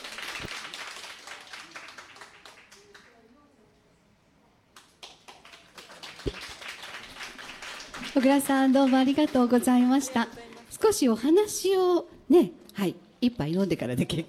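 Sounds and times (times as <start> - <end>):
audience applause: 0.0 - 3.2, 4.8 - 10.7
speech: 8.2 - 14.2.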